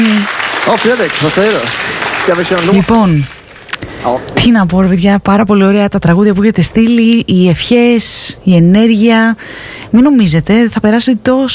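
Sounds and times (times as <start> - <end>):
applause after a live music performance: 0.0 - 3.7
speech: 0.7 - 3.4, 4.0 - 11.5.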